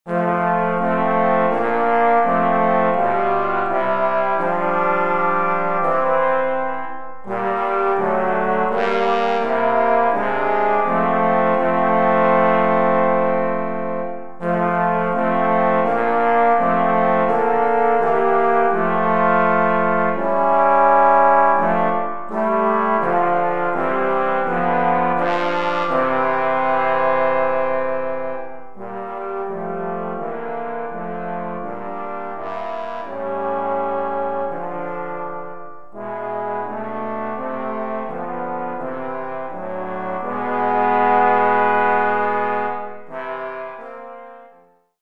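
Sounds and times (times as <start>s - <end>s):
trombone trio: 0.1s - 44.7s.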